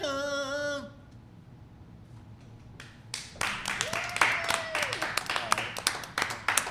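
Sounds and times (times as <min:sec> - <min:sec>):
audience clapping: 0:02.5 - 0:06.6.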